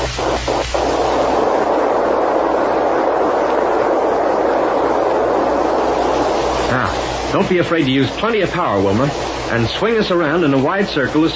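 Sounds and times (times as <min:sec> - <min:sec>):
rocket ship taking off: 0:00.0 - 0:11.3
speech: 0:06.7 - 0:11.3.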